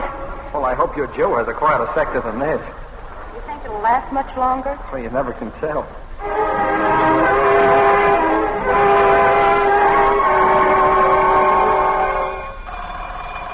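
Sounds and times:
air raid all-clear siren: 0.0s - 2.6s, 6.2s - 13.5s
speech: 0.6s - 2.8s, 3.4s - 7.3s.

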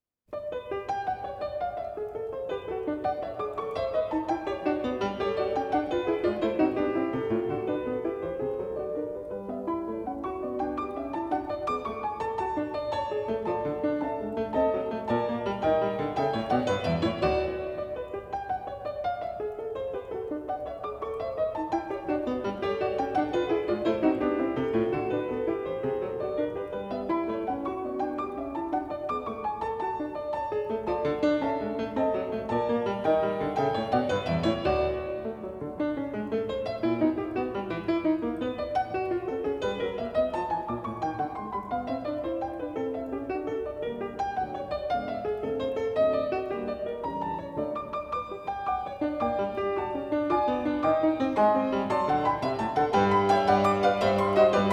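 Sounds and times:
gigue for piano in G major: 0.3s - 54.7s.

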